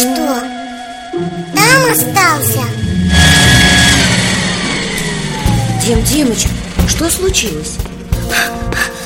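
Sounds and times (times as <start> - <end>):
speech: 0.0 - 0.6, 1.9 - 2.8, 5.9 - 8.5
vacuum cleaner running: 2.9 - 8.2.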